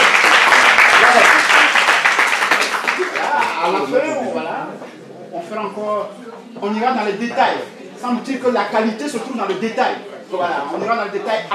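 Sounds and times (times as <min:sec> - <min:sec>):
audience applause at a French-language presentation: 0:00.0 - 0:03.8
speech: 0:03.6 - 0:11.5.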